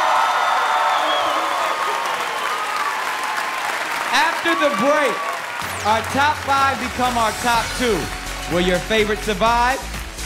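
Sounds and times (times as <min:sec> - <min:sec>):
faint whoops: 0:00.0 - 0:03.4
studio audience applauding and cheering: 0:00.0 - 0:10.2
speech: 0:04.4 - 0:10.0.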